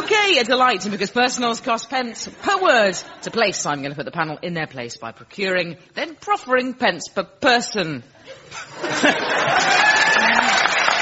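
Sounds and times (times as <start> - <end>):
speech: 0.3 - 10.6
laughter: 8.2 - 11.0
audience applause: 9.0 - 11.0.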